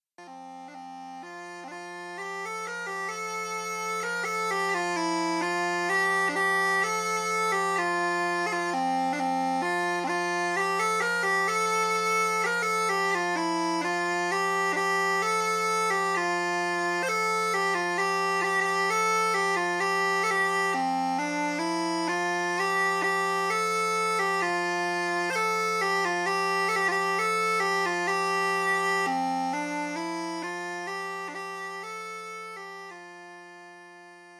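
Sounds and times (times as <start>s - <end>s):
Hümmelchen bagpipe drone in F: 0.2s - 34.3s.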